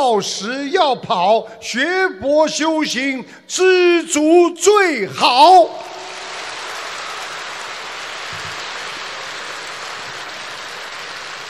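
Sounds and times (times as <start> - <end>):
speech: 0.0 - 6.1
audience applause: 5.8 - 11.4.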